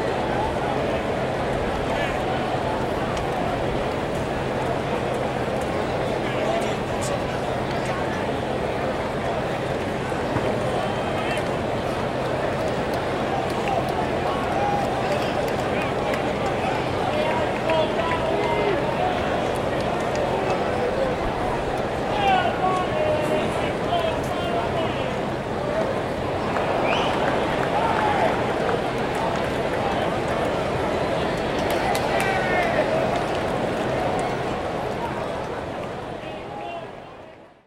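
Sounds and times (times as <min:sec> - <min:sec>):
baseball sports crowd: 0:00.0 - 0:37.6.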